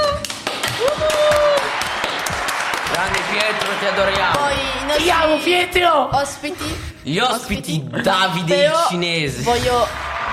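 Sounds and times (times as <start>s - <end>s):
people clapping for a show's technician: 0.0s - 4.9s, 9.5s - 10.3s
speech: 3.4s - 10.0s.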